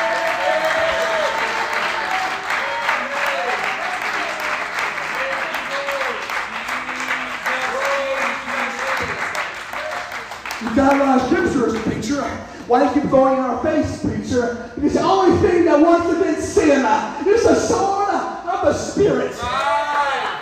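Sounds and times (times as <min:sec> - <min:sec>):
audience shouting praise: 0:00.0 - 0:11.0, 0:19.3 - 0:20.4
audience clapping: 0:00.0 - 0:12.4
speech: 0:10.9 - 0:18.0, 0:18.6 - 0:19.6.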